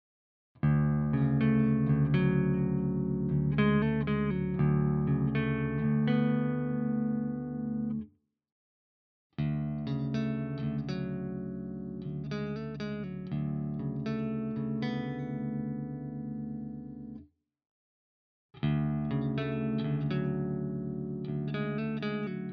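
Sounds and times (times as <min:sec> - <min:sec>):
RGT1270 guitar clean arpeggios in all pickup positions: 0:00.6 - 0:08.1, 0:09.4 - 0:17.2, 0:18.6 - 0:22.5.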